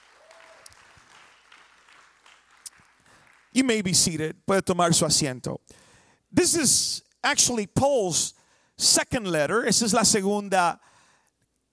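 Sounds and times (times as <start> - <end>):
audience clapping: 0.0 - 4.0
speech: 3.6 - 10.9.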